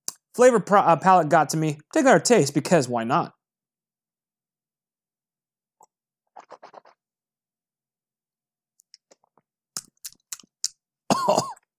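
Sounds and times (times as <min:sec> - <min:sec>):
speech: 0:00.4 - 0:03.4, 0:11.2 - 0:11.5
person coughing after tasting bourbon: 0:11.1 - 0:11.7.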